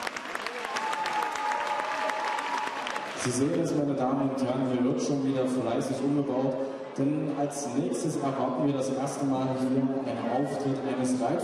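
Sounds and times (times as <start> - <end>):
audience applause: 0.0 - 3.6
speech: 3.2 - 11.4.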